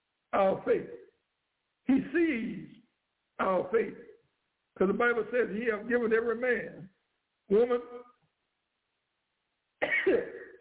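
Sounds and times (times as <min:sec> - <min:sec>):
speech: 0:00.3 - 0:01.0, 0:01.9 - 0:02.7, 0:03.4 - 0:04.1, 0:04.8 - 0:06.9, 0:07.5 - 0:08.1
preacher coughing: 0:09.8 - 0:10.5.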